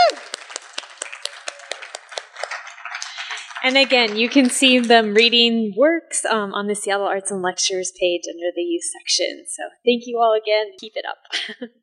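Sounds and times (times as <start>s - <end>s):
person cheering: 0.0s - 0.4s
audience applause for young writers: 0.0s - 5.5s
speech: 3.6s - 11.8s.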